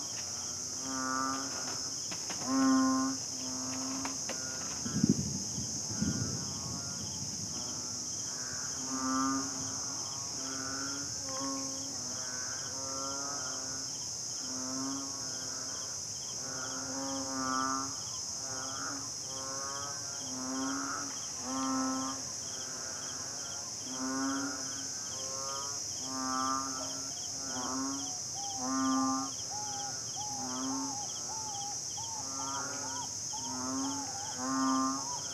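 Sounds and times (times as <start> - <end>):
banded bullfrog chorus on Lamma Island in Hong Kong: 0.0 - 35.3
thunderstorm on Lamma Island in Hong Kong: 4.8 - 7.9.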